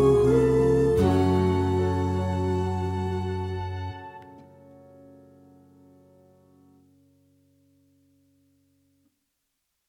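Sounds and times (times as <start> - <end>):
bass: 0.0 - 6.8.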